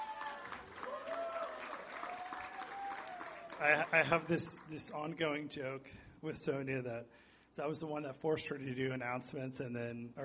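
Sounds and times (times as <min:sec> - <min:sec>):
cheers and voices: 0:00.0 - 0:03.7
audience applause: 0:00.0 - 0:04.9
speech: 0:03.6 - 0:10.2.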